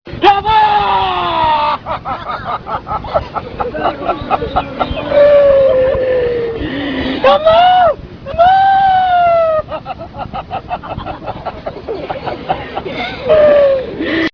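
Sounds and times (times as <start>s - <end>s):
wail: 0.2s - 1.8s, 4.8s - 9.8s, 13.2s - 14.1s
laughter: 1.1s - 7.6s, 8.3s - 14.3s.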